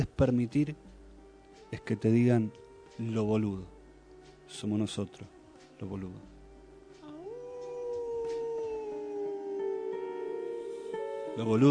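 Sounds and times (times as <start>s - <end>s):
speech: 0.0s - 0.9s, 1.7s - 3.8s, 4.5s - 6.3s, 11.4s - 11.6s
person howling like a wolf: 7.1s - 10.9s.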